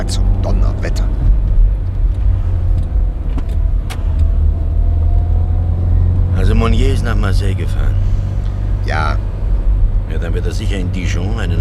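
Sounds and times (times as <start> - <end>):
speech: 0.0 - 1.4, 7.0 - 8.1, 8.9 - 9.2, 10.1 - 11.5
car engine rumble driving around a block: 0.0 - 11.5
road hum: 0.0 - 11.5.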